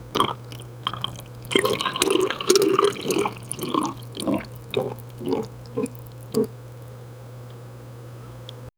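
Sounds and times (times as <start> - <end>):
person drinking water: 0.0 - 7.0.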